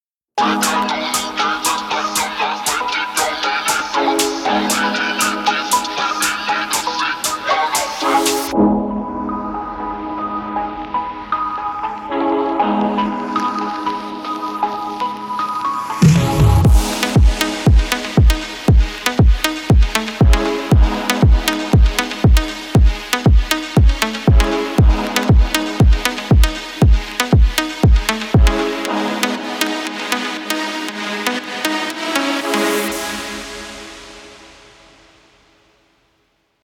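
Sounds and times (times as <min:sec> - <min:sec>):
phonk music: 0:00.4 - 0:34.8.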